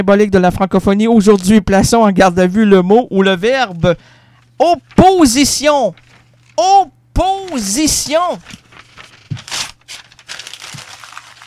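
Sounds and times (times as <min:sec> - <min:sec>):
speech: 0:00.0 - 0:06.0, 0:06.6 - 0:08.6
paper crinkling and rustling: 0:03.6 - 0:06.6, 0:07.3 - 0:11.4
paper tearing: 0:07.3 - 0:11.4.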